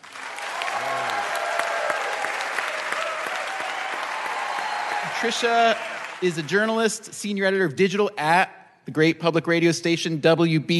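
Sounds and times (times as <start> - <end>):
audience applause welcoming a guest onstage: 0.0 - 6.9
speech: 5.2 - 10.7.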